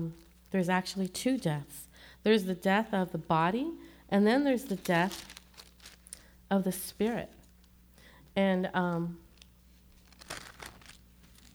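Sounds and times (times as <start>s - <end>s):
speech: 0.0s - 5.4s, 6.5s - 7.4s, 8.4s - 9.2s
quiet hum: 0.0s - 11.5s
pages of a Bible rustling as it is handled: 4.6s - 8.4s, 9.3s - 11.5s.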